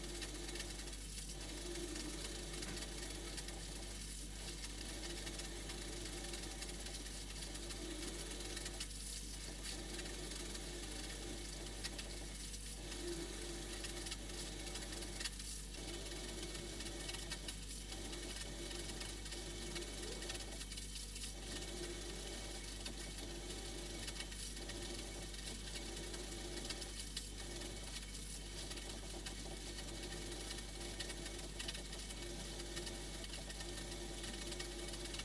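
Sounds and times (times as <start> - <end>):
fridge hum recorded inside the fridge: 0.0 - 35.2.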